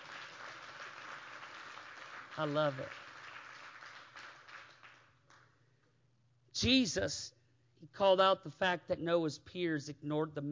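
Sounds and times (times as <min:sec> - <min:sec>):
audience clapping hands: 0:00.0 - 0:05.6
speech: 0:02.4 - 0:03.0, 0:06.6 - 0:10.5.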